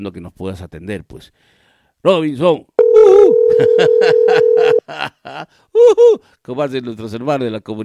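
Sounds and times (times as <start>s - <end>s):
speech: 0.0s - 7.8s
telephone dial tone while a call is placed: 2.8s - 4.8s.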